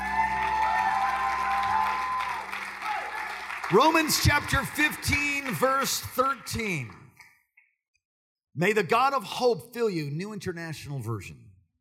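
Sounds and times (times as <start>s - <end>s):
crowd clapping: 0.0s - 7.2s
speech: 3.7s - 7.0s, 8.6s - 11.4s.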